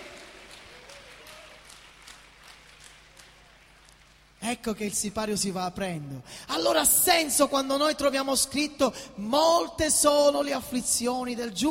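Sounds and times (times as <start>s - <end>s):
audience applause: 0.0s - 4.3s
speech: 4.5s - 11.6s.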